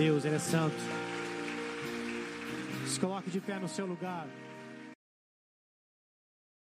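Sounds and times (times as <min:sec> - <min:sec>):
speech: 0:00.0 - 0:01.1, 0:02.9 - 0:04.5
audience applauding: 0:00.0 - 0:05.0.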